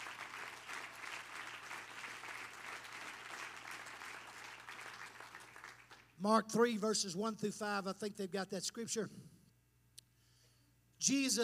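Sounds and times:
audience clapping hands: 0:00.0 - 0:06.2
speech: 0:06.2 - 0:09.3, 0:11.1 - 0:11.4.

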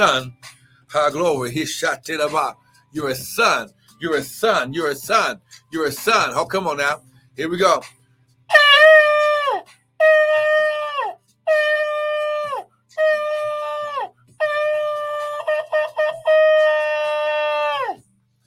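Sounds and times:
speech: 0:00.0 - 0:09.0
loud brassy trumpet blasts: 0:08.5 - 0:17.9.

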